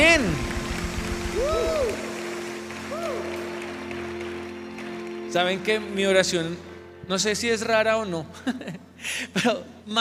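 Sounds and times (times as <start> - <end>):
audience applause: 0.0 - 6.2
speech: 5.3 - 9.9.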